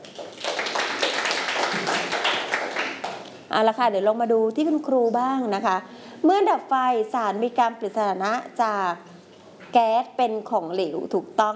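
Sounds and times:
classroom clapping: 0:00.0 - 0:03.4
speech: 0:03.6 - 0:09.1, 0:09.7 - 0:11.5.

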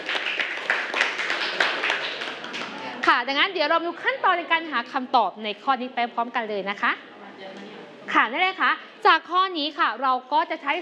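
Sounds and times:
hands clapping: 0:00.0 - 0:02.9
speech: 0:03.1 - 0:07.1, 0:08.1 - 0:10.8.

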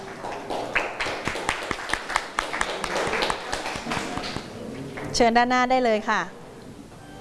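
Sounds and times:
classroom applause with clapping hands: 0:00.0 - 0:05.1
speech: 0:05.2 - 0:06.4.

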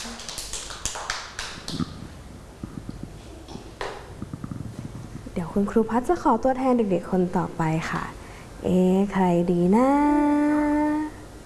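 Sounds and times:
children clapping hands: 0:00.0 - 0:02.0
speech: 0:05.4 - 0:10.4.

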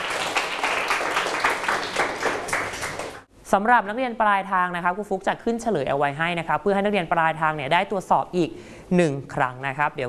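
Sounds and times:
students clapping: 0:00.0 - 0:03.3
speech: 0:03.5 - 0:10.0.

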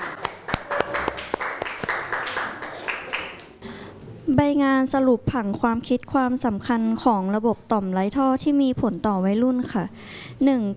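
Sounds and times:
classroom group applause: 0:00.0 - 0:03.6
speech: 0:04.3 - 0:10.7.

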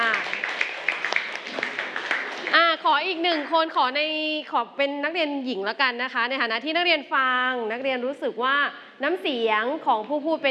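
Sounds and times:
classroom applause: 0:00.0 - 0:03.0
speech: 0:03.0 - 0:10.4.

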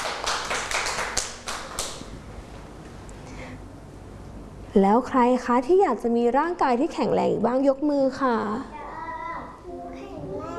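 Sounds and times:
small group of children clapping: 0:00.0 - 0:02.2
speech: 0:04.8 - 0:08.8.

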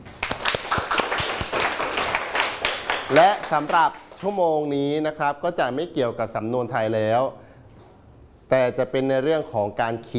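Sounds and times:
students clapping: 0:00.0 - 0:04.3
speech: 0:03.1 - 0:07.4, 0:08.5 - 0:10.1.

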